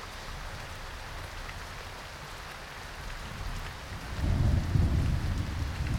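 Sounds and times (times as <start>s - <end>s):
thunderstorm: 3.3s - 5.9s.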